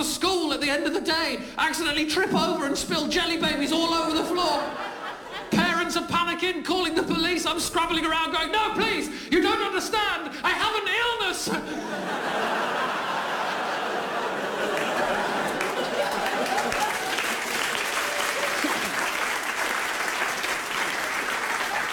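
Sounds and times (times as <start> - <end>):
speech: 0.6 - 4.9, 5.5 - 12.8
laughter: 3.4 - 5.9, 11.5 - 21.9
crowd clapping: 14.5 - 21.9.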